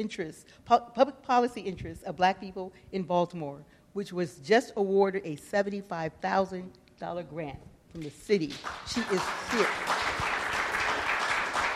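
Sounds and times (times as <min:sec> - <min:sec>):
speech: 0:00.0 - 0:10.2
crowd applauding: 0:08.6 - 0:11.7.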